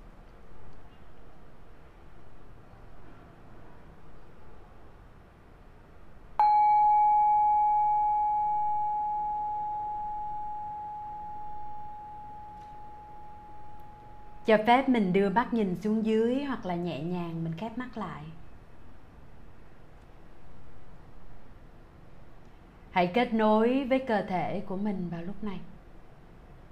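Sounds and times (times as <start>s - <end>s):
struck bell ringing: 6.4s - 14.3s
speech: 14.5s - 18.4s, 23.0s - 25.7s.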